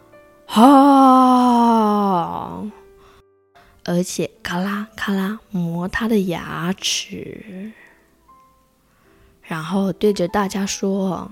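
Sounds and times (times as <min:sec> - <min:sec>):
human voice imitating a crocodile's low roar: 0:00.5 - 0:02.6
speech: 0:00.6 - 0:00.9, 0:03.9 - 0:07.8, 0:09.5 - 0:11.3.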